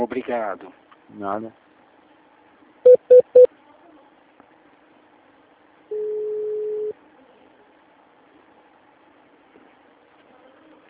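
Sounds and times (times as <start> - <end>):
speech: 0.0 - 1.6
telephone keypad beeps transferring a call: 2.9 - 3.5
long steady telephone tone: 5.9 - 7.0.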